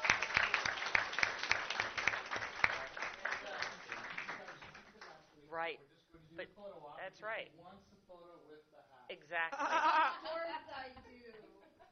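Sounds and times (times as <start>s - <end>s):
audience applause: 0.0s - 5.1s
speech: 5.6s - 11.4s
laughter: 9.5s - 11.8s.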